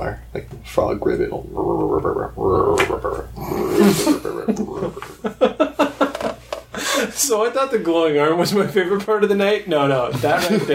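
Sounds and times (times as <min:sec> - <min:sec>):
speech: 0:00.0 - 0:05.7, 0:07.2 - 0:10.7
person imitating snoring: 0:01.5 - 0:05.0
laughter: 0:03.7 - 0:07.2, 0:10.1 - 0:10.7.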